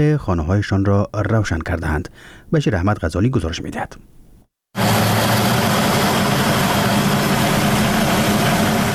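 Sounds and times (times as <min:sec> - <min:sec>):
speech: 0:00.0 - 0:04.2
small electricity turbine in Doab village, Khinjan district, Baghlan: 0:04.8 - 0:08.9.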